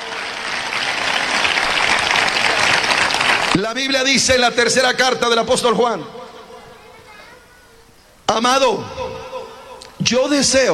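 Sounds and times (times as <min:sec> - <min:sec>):
loud applause: 0:00.0 - 0:04.2
speech: 0:03.6 - 0:06.2, 0:08.3 - 0:09.2, 0:10.0 - 0:10.7.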